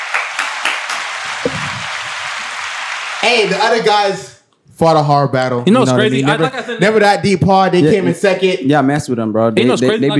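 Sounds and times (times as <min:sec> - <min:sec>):
crowd applause: 0:00.0 - 0:03.8
speech: 0:03.2 - 0:10.1.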